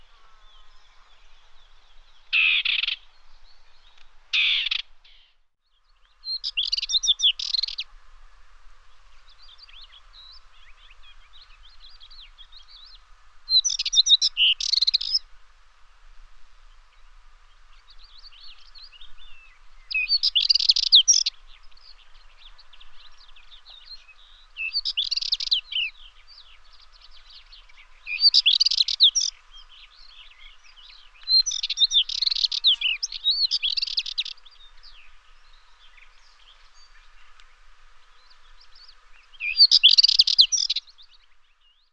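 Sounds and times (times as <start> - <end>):
Dartford warbler singing: 0.0 - 8.0, 8.9 - 15.3, 16.7 - 41.9.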